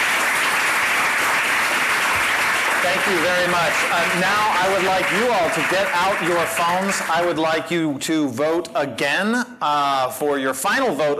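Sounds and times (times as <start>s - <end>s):
audience applause: 0.0s - 7.6s
speech: 2.9s - 11.1s.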